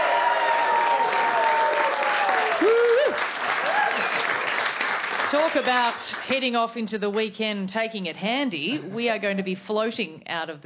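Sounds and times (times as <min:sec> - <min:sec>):
whistles and cheers: 0:00.0 - 0:04.5
round of applause: 0:00.0 - 0:06.6
speech: 0:05.3 - 0:10.6.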